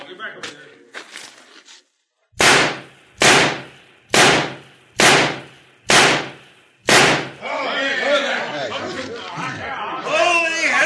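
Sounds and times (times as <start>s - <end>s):
people talking: 0.0s - 0.9s, 7.4s - 10.8s
gunshots fired at a target in a shooting contest: 2.3s - 7.4s
crowd murmur: 7.4s - 10.8s.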